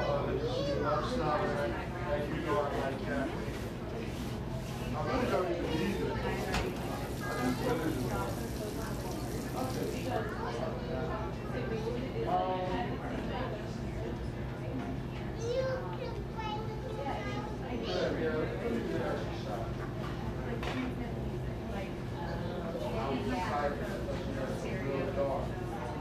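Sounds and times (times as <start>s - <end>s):
overlapping chatter in a buzzing coffee shop: 0.0s - 25.9s.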